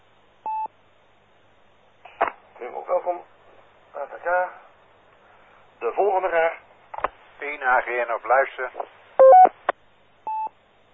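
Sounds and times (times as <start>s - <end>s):
speech: 2.6s - 4.6s, 5.9s - 6.6s, 7.4s - 9.4s
radio roger beep: 9.2s - 9.6s.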